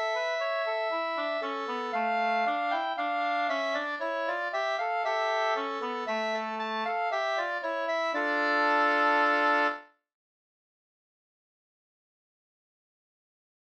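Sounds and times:
old wedding march music: 0.0s - 9.8s.

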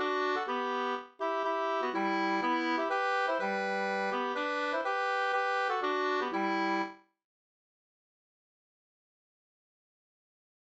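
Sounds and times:
two-part polska folk dance tune: 0.0s - 6.9s.

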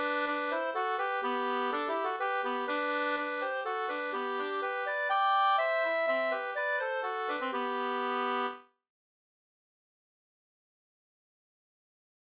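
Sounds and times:
polska dance tune: 0.0s - 8.6s.

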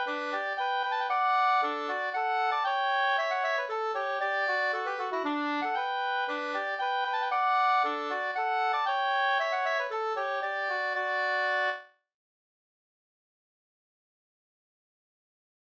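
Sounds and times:
polska folk dance tune: 0.0s - 11.8s.

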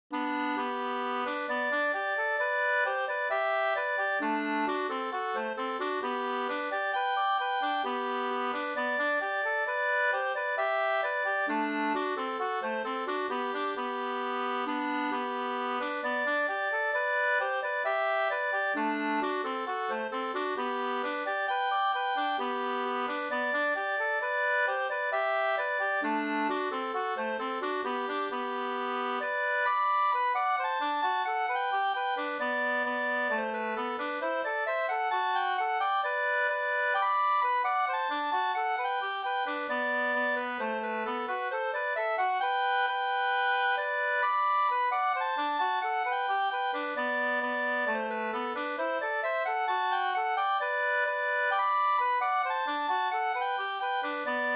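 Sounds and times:
schottis folk dance tune: 0.1s - 54.5s.

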